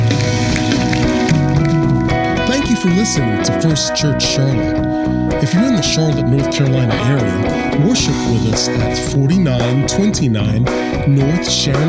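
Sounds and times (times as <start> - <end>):
audience clapping hands in praise: 0.0 - 3.4
speech: 2.8 - 11.8.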